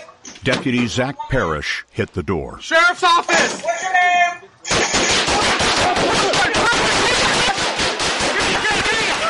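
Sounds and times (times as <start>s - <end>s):
speech: 0.5s - 5.1s
gunfire during a police shootout: 4.7s - 9.2s.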